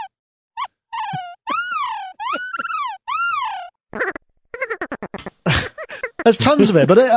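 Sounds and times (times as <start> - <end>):
synthesized seal sound from animal emulator plugin: 0.0 - 5.2
speech: 6.3 - 7.1.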